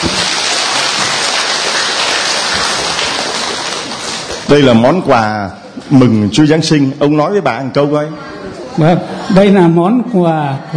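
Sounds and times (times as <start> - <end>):
round of applause: 0.0 - 4.6
speech: 4.5 - 10.7
laughter: 8.5 - 10.7.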